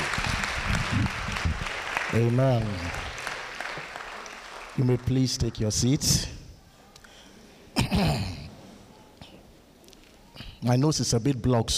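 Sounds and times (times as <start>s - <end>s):
audience clapping to welcome a speaker: 0.0s - 6.0s
speech: 2.1s - 3.1s, 4.8s - 6.3s, 10.6s - 11.7s.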